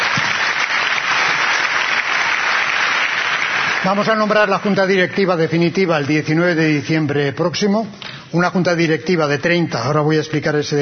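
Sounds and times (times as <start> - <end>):
audience applause: 0.0 - 5.5
speech: 3.8 - 10.8.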